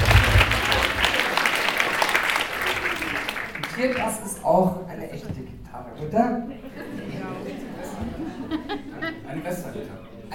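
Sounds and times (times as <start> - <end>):
low rumble: 0.0 - 0.9
audience applause during a live demonstration of musical instruments: 0.0 - 4.1
speech: 3.8 - 7.0
laughter: 6.5 - 9.8.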